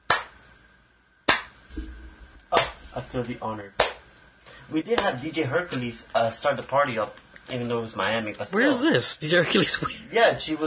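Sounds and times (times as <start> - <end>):
very slow hand claps: 0.0 - 0.4, 1.2 - 1.6, 2.5 - 2.8, 3.8 - 4.1
speech: 2.5 - 3.8, 4.7 - 10.6.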